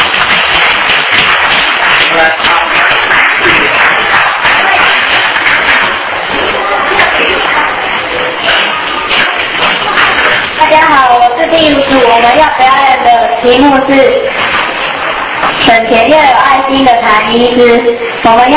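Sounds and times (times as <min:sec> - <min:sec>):
group clapping: 0:00.0 - 0:12.9, 0:14.2 - 0:16.2
speech: 0:13.5 - 0:14.2, 0:15.7 - 0:18.5.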